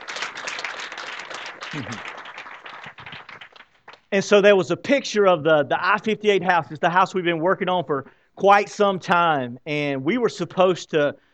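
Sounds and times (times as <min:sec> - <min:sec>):
audience clapping: 0:00.0 - 0:04.2
murmur of voices: 0:01.7 - 0:02.1
speech: 0:01.7 - 0:02.2, 0:04.1 - 0:11.2.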